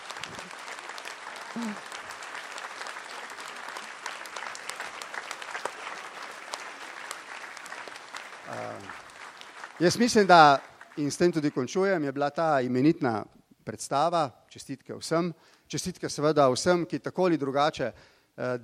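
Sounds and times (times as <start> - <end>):
audience applause: 0.0 - 12.0
speech: 1.6 - 1.9, 9.8 - 18.6.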